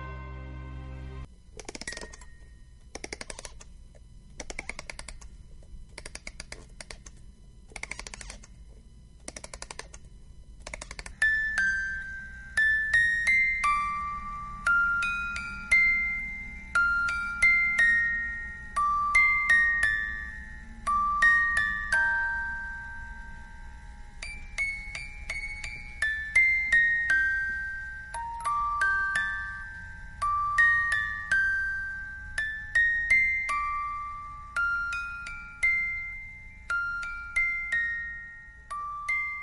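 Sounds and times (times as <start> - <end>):
soft low hum: 0.0 - 39.4
music box melody: 11.1 - 39.4.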